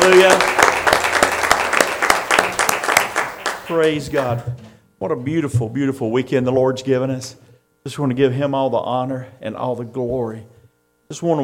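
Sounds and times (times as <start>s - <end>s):
church congregation clapping in praise at a Mother's Day service: 0.0s - 4.6s
speech: 3.7s - 10.5s, 11.1s - 11.4s.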